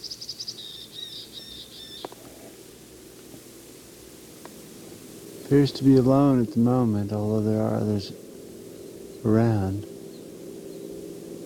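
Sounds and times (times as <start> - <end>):
bird calling from a tree: 0.0 - 2.6, 5.4 - 11.4
speech: 5.5 - 8.2, 9.2 - 9.9.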